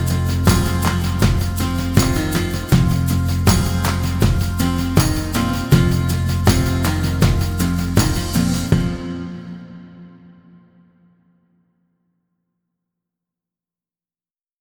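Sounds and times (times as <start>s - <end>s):
country folk trailer music: 0.0s - 10.5s.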